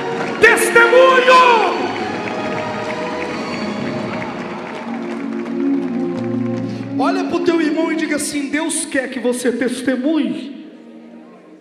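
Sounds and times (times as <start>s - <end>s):
crowd applauding and cheering: 0.0s - 8.4s
speech: 8.2s - 10.6s.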